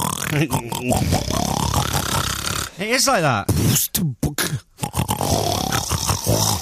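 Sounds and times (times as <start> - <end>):
person imitating pig grunts and oinks: 0.0 - 2.8, 4.1 - 6.6
speech: 0.3 - 1.6, 2.8 - 4.6.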